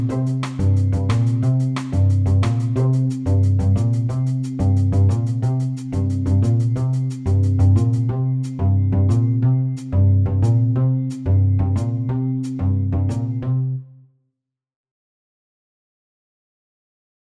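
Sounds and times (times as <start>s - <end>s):
jazz music: 0.0s - 13.4s.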